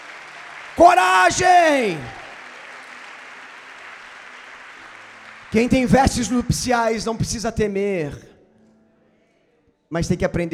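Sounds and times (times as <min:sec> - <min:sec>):
audience applause: 0:00.0 - 0:07.3
speech: 0:00.8 - 0:02.2, 0:05.5 - 0:08.3, 0:09.9 - 0:10.5.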